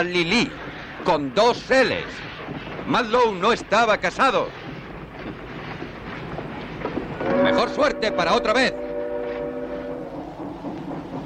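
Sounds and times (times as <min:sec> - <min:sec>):
speech: 0:00.0 - 0:04.6, 0:07.4 - 0:08.8
low rolling rumble of train wagons pulling away: 0:00.0 - 0:11.2
multi-tone train whistle: 0:07.2 - 0:10.4.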